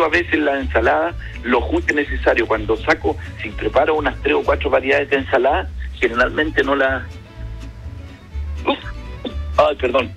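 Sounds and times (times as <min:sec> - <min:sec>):
speech: 0:00.0 - 0:07.2, 0:09.6 - 0:10.1
person sneezing: 0:08.6 - 0:09.5.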